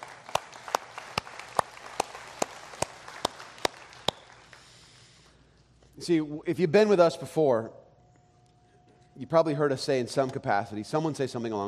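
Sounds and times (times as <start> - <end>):
audience clapping in rhythm: 0.0 - 4.9
hiss: 0.0 - 11.6
speech: 6.0 - 7.8, 9.2 - 11.6.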